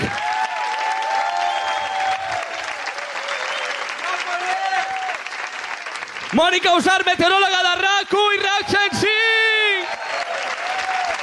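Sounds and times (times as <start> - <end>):
cheering voices and whoops: 0.0 - 5.9, 8.4 - 11.2
audience applause: 0.0 - 11.2
speech: 6.3 - 9.5.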